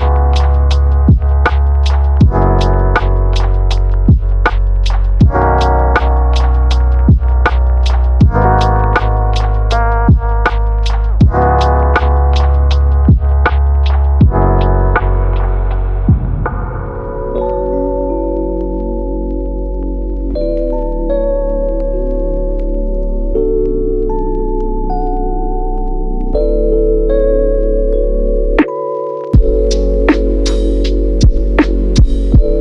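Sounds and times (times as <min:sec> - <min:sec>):
lofi hip hop music: 0:00.0 - 0:32.6.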